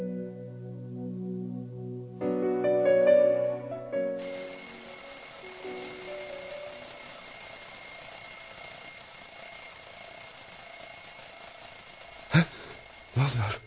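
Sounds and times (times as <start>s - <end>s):
steady hissy background with a thin high tone: 0.1s - 13.6s
alarm clock ringing: 4.2s - 13.6s.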